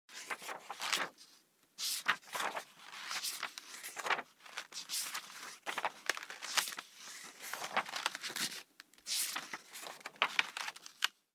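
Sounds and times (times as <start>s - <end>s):
quickly skimming text in a book: 0.1s - 11.2s.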